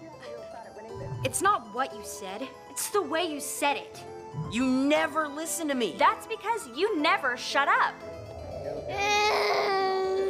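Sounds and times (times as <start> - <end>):
speech: 1.2 - 8.1
baby crying: 8.7 - 10.2.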